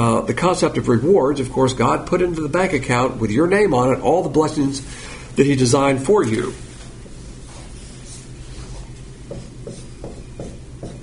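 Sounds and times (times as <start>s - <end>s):
speech: 0.1s - 6.7s
marker squeaking and scratching on a board: 8.8s - 11.0s.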